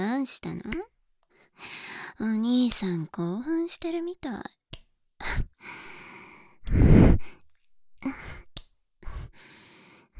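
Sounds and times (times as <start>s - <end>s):
speech: 0.2s - 0.9s, 1.5s - 4.6s, 8.0s - 8.4s
breathing close to the ear: 1.3s - 2.2s, 5.2s - 7.4s, 8.0s - 10.1s.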